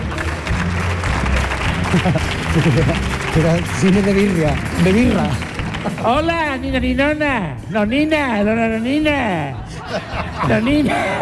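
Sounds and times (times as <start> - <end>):
audience applause: 0.0 - 6.5
laughter: 1.6 - 3.2, 5.7 - 6.3, 9.3 - 11.2
speech: 1.9 - 11.2.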